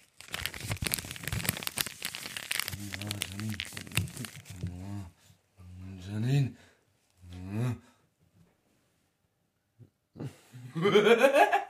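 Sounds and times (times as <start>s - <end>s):
crinkling into the microphone: 0.0s - 5.0s
laughter: 10.7s - 11.6s
speech: 10.8s - 11.6s.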